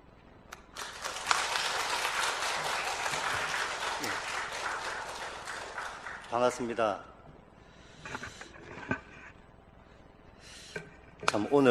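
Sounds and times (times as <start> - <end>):
audience applause welcoming a speaker: 0.7 - 6.8
speech: 6.3 - 7.1, 11.3 - 11.6.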